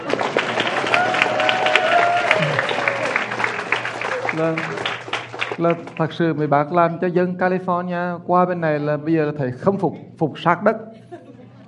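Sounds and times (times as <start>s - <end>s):
audience in Maryland applauding and cheering: 0.0s - 6.1s
speech: 4.4s - 4.9s, 5.6s - 10.9s
laughter: 10.9s - 11.6s.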